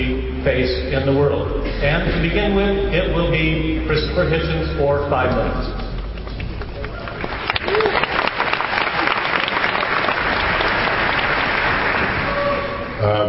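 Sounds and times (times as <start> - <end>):
speech: 0.4 - 5.8
audience applause: 6.1 - 13.2.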